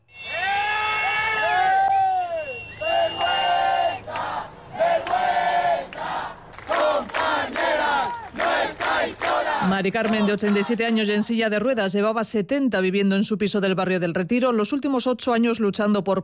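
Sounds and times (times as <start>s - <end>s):
crowd of protesters shouting during police eviction: 0.2s - 10.8s
speech: 9.8s - 16.2s.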